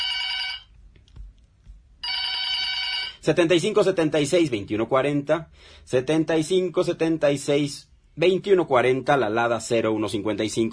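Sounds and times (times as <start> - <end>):
telephone bell ringing: 0.0 - 0.7, 2.0 - 3.3
speech: 3.2 - 10.7.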